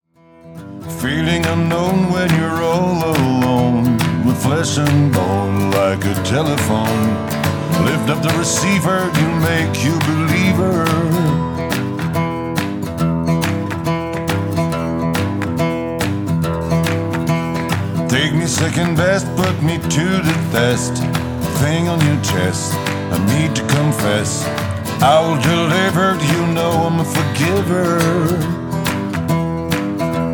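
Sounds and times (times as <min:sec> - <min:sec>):
guitar: 0:00.0 - 0:30.3
voice: 0:00.9 - 0:11.4, 0:18.0 - 0:28.6.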